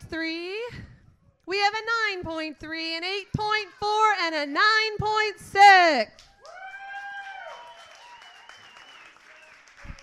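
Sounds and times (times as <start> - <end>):
speech: 0.1 - 0.9, 1.5 - 6.3
applause: 6.1 - 10.0.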